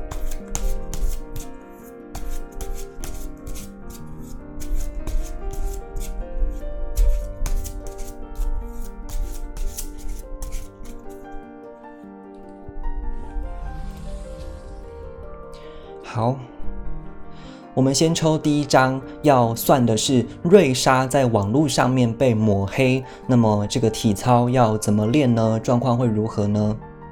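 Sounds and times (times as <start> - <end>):
deck of tarot cards being shuffled: 0.0 - 6.2, 7.0 - 11.2
speech: 16.2 - 16.5, 17.8 - 26.9.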